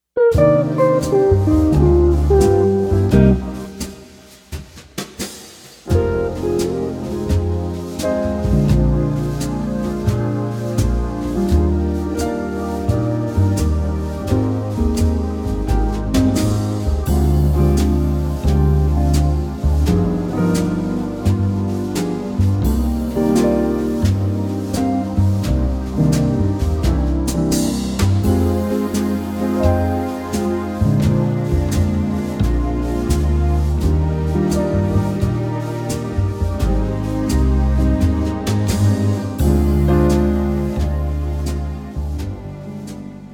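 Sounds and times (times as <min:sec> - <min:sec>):
ballad: 0:00.2 - 0:43.3.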